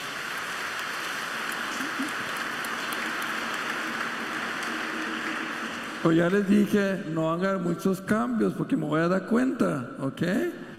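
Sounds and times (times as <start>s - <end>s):
applause: 0.0s - 7.0s
speech: 6.0s - 10.6s.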